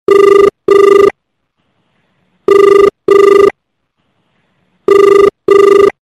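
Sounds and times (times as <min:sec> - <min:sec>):
default call ringtone: 0:00.1 - 0:01.1, 0:02.5 - 0:03.5, 0:04.9 - 0:06.0.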